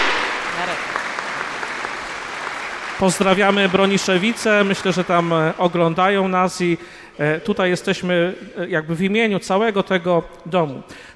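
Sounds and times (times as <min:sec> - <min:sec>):
audience applause: 0:00.0 - 0:06.2
speech: 0:03.0 - 0:11.1.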